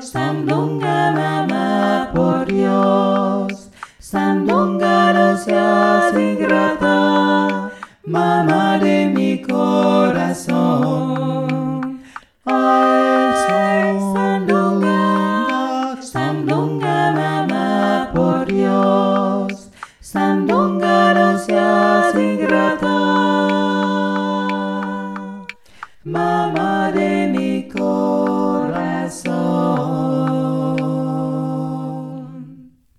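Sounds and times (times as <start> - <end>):
click track: 0.0 - 31.4
voice singing with full ensemble: 0.0 - 32.8.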